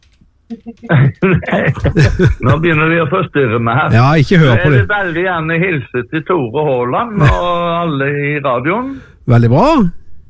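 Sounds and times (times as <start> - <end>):
typing on a computer keyboard: 0.0 - 1.6
laughter: 0.5 - 5.8, 7.0 - 7.9
speech: 0.5 - 10.0.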